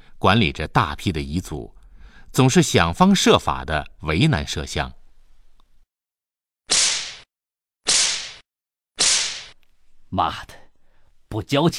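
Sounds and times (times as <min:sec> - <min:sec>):
speech: 0:00.2 - 0:05.0, 0:10.1 - 0:10.6, 0:11.3 - 0:11.7
whip cracking: 0:06.7 - 0:07.3, 0:07.9 - 0:09.6.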